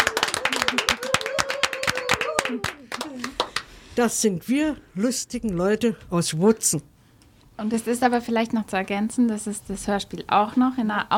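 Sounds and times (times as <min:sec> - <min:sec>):
small group clapping: 0:00.0 - 0:03.8
speech: 0:04.0 - 0:06.9, 0:07.6 - 0:11.1.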